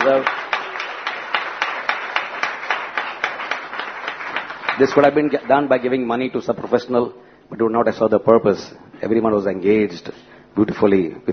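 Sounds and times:
speech: 0.0 - 0.4, 4.8 - 11.3
audience clapping: 0.0 - 6.2.

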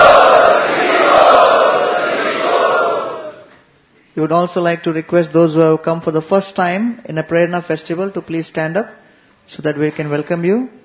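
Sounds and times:
large crowd chanting at a Prerna festival gathering: 0.0 - 3.5
speech: 4.2 - 10.8.

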